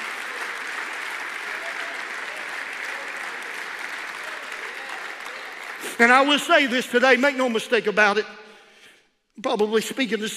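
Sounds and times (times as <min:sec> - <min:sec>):
audience clapping hands: 0:00.0 - 0:07.6
speech: 0:06.0 - 0:08.4, 0:09.4 - 0:10.3.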